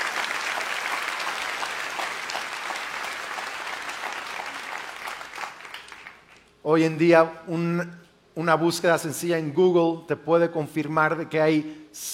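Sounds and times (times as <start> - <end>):
audience applause: 0.0 - 6.4
speech: 6.6 - 12.1.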